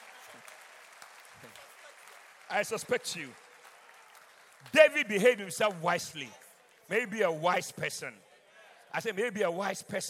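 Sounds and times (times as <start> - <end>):
audience clapping: 0.0 - 7.3
speech: 2.5 - 3.4, 4.6 - 8.3, 8.9 - 10.0.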